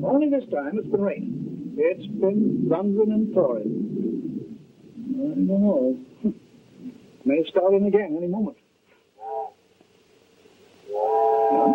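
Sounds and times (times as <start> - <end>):
speech: 0.2 - 4.0, 5.2 - 6.4, 7.2 - 8.6, 11.0 - 11.7
train whistle: 9.2 - 9.6, 10.8 - 11.7.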